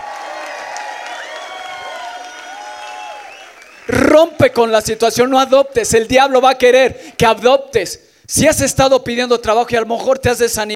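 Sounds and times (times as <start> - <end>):
audience applause: 0.0 - 4.1
speech: 3.9 - 10.7.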